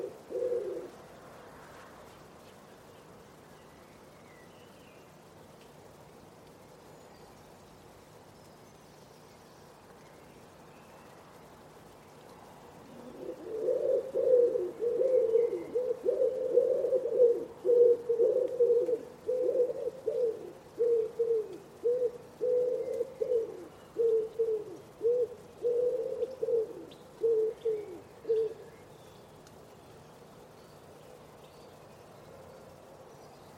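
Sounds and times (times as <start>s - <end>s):
Common Wood Pigeon cooing: 0.0s - 1.0s, 12.8s - 28.7s.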